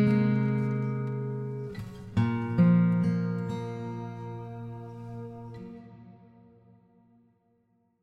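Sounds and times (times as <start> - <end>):
acoustic electro pop comedy music: 0.0 - 6.4.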